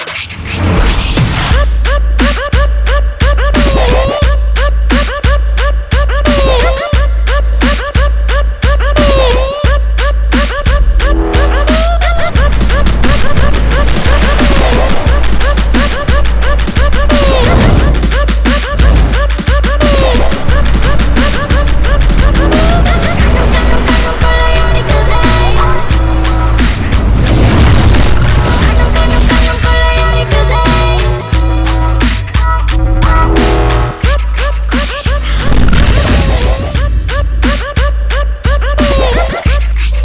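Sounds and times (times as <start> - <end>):
interval background music: 1.2 - 40.0.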